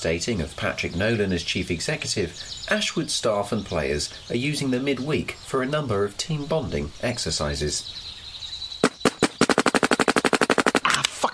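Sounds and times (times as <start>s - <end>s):
speech: 0.0s - 8.1s
video game gunfire like an automatic weapon: 8.8s - 10.9s.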